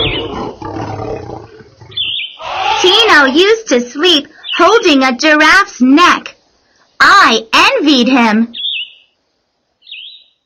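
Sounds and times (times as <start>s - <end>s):
lion roaring: 0.0s - 2.1s
speech: 3.1s - 6.3s, 7.0s - 8.6s.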